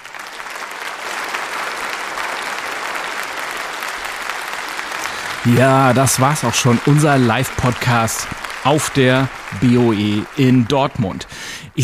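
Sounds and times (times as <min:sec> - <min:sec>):
audience applause: 0:00.0 - 0:11.8
speech: 0:05.4 - 0:11.8.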